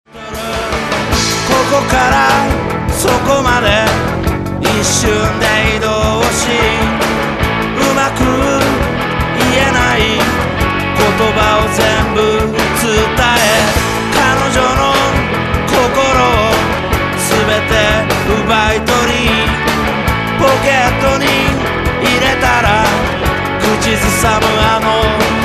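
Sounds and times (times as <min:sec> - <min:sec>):
music: 0:00.1 - 0:25.4.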